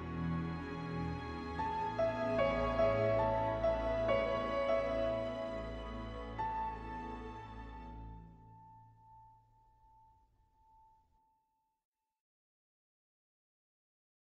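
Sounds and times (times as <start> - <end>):
strings playing: 0.0 - 8.5.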